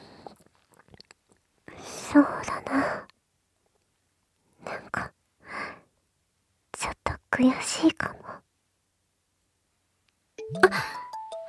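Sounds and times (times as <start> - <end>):
speech: 2.1 - 2.9, 7.4 - 8.2
phone ringing with an electronic tone: 10.4 - 11.4.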